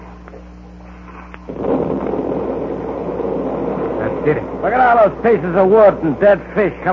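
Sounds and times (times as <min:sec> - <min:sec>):
underwater explosion: 0:01.5 - 0:06.9
speech: 0:04.2 - 0:06.9.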